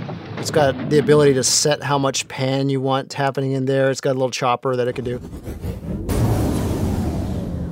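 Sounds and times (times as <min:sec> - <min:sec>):
speech: 0:00.5 - 0:05.6
impact sound effect from audio plugin: 0:04.9 - 0:07.6.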